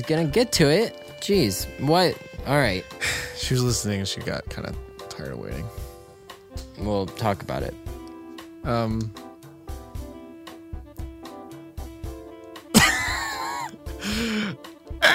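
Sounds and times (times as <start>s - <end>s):
speech: 0.0s - 5.8s, 6.8s - 7.9s, 8.6s - 9.2s
loud rasping throat clearing: 12.7s - 15.1s.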